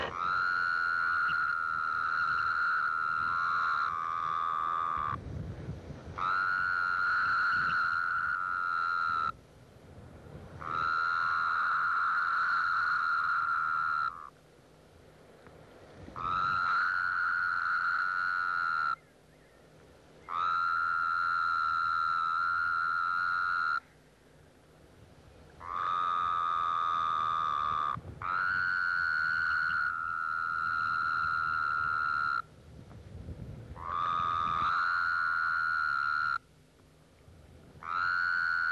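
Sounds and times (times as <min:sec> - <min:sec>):
Wyoming toad calling: 0:00.0 - 0:05.2, 0:06.1 - 0:09.4, 0:10.5 - 0:14.4, 0:16.1 - 0:19.6, 0:20.2 - 0:24.0, 0:25.5 - 0:32.5, 0:33.7 - 0:36.5, 0:37.8 - 0:38.6.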